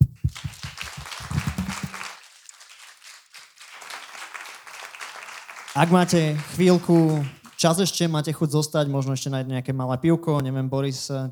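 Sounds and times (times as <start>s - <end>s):
audience applause: 0.0s - 7.8s
speech: 5.8s - 11.3s.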